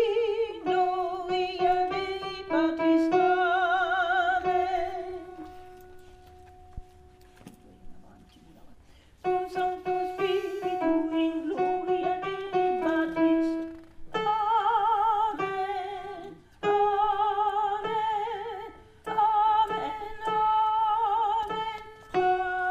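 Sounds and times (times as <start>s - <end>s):
alto singing: 0.0s - 6.6s, 9.2s - 22.6s.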